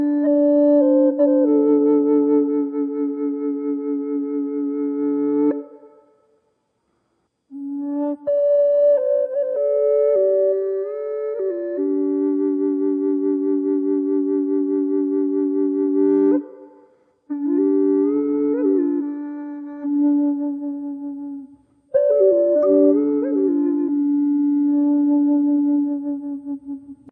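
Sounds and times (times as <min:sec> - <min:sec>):
drone flute in D without effects: 0:00.0 - 0:06.5, 0:07.5 - 0:27.1.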